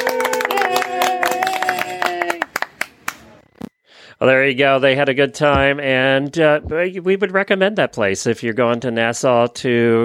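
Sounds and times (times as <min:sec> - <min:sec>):
small group clapping: 0:00.0 - 0:03.4
speech: 0:04.2 - 0:10.0.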